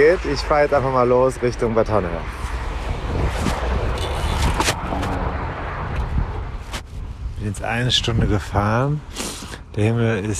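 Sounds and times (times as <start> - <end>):
speech: 0.0 - 2.5, 7.4 - 10.3
strong headwind blowing: 1.6 - 8.8.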